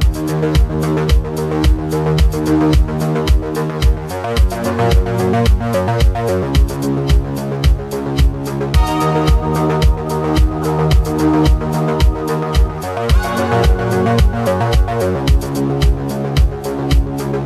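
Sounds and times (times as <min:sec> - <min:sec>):
casual music loop: 0:00.0 - 0:17.4.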